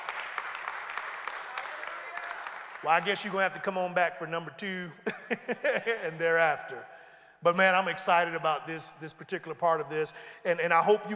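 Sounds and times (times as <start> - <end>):
crowd clapping: 0.0 - 3.6
speech: 2.8 - 11.1
laughter: 5.0 - 6.4.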